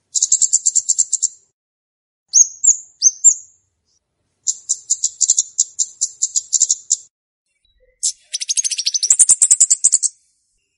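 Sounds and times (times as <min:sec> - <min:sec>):
flowerpecker ticking call series: 0:00.1 - 0:01.4, 0:04.4 - 0:07.1, 0:08.0 - 0:10.1.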